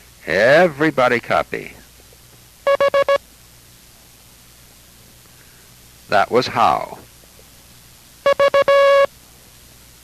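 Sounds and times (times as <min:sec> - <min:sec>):
faint hiss: 0:00.0 - 0:10.0
speech: 0:00.2 - 0:01.8, 0:06.1 - 0:07.1
Morse code letter V electronic beeps: 0:02.7 - 0:03.2, 0:08.2 - 0:09.1.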